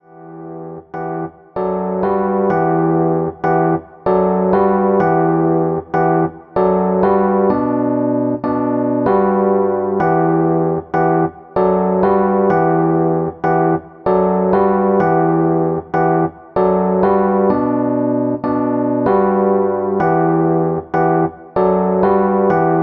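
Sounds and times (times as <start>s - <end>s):
Rhodes electric piano hip hop chords: 0.0s - 22.8s.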